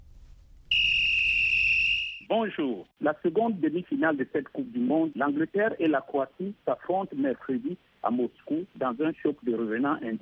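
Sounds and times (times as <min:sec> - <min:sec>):
referee's final whistle long shrill blast: 0:00.7 - 0:02.3
speech: 0:02.3 - 0:10.2.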